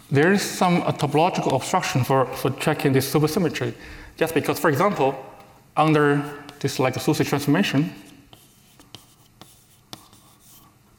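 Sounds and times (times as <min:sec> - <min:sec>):
speech: 0:00.1 - 0:08.0
writing on a board during a physics lecture: 0:06.2 - 0:06.8, 0:07.9 - 0:10.7.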